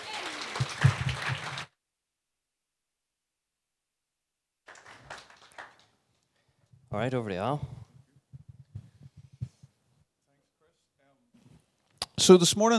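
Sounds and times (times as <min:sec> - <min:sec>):
audience applause: 0:00.0 - 0:01.8, 0:04.7 - 0:06.0
speech: 0:07.0 - 0:07.8, 0:12.3 - 0:12.7.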